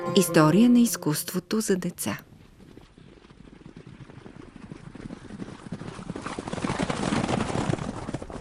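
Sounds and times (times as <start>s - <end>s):
speech: 0.1s - 2.3s
hoofbeats of forty horsemen riding into a small mud-brick fortress near Termez, Uzbekistan: 2.2s - 8.4s.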